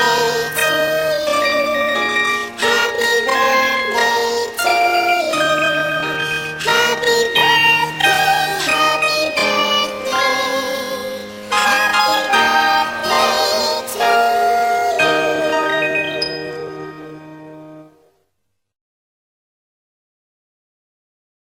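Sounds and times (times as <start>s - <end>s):
chipmunk voices singing: 0.0s - 17.0s.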